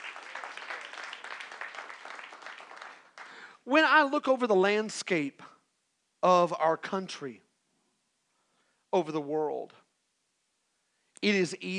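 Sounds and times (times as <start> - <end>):
audience clapping: 0.0 - 3.6
speech: 3.7 - 5.5, 6.2 - 7.4, 8.9 - 9.8, 11.2 - 11.7.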